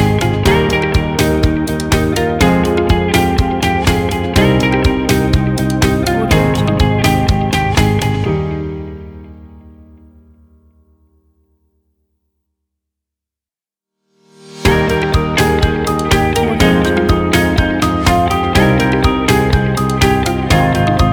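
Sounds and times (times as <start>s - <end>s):
uplifting inspiring motivational corporate music: 0.0s - 9.8s, 14.6s - 21.1s.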